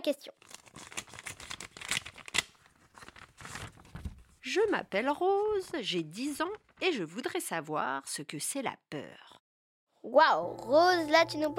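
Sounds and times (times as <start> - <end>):
speech: 0.0 - 0.9, 4.4 - 9.2, 10.0 - 11.5
envelope being opened: 0.4 - 4.3.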